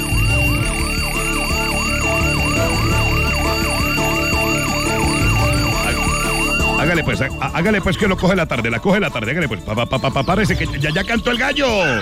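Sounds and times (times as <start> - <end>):
electronic alarm clock ringing: 0.0 - 12.0
speech: 7.1 - 12.0.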